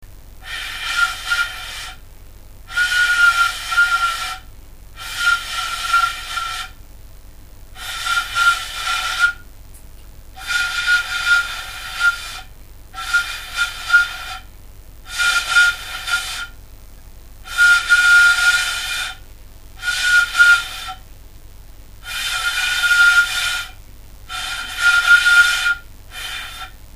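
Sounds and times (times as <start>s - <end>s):
flute: 0.4s - 2.0s, 2.7s - 6.8s, 7.8s - 9.4s, 10.4s - 14.5s, 15.1s - 16.6s, 17.5s - 19.2s, 19.8s - 21.0s, 22.0s - 26.8s.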